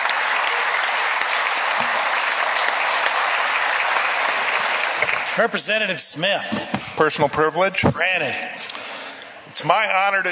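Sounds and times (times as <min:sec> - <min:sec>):
round of applause: 0:00.0 - 0:06.0
speech: 0:05.4 - 0:08.7, 0:09.6 - 0:10.3.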